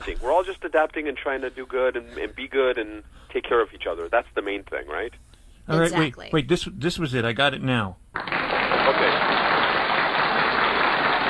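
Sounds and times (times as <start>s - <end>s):
speech: 0.1s - 9.3s
crowd cheering: 8.2s - 11.2s.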